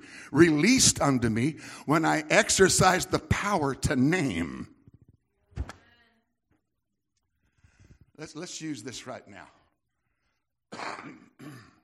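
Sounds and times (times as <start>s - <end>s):
speech: 0.3s - 4.8s, 8.2s - 9.6s, 10.7s - 11.7s
harsh coughing into the arm: 10.7s - 11.8s.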